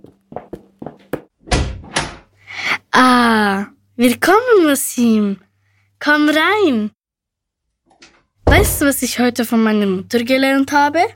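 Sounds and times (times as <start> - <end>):
door being opened: 1.4 - 2.3, 7.9 - 9.0
speech: 2.9 - 5.4, 6.0 - 7.0, 8.5 - 11.1.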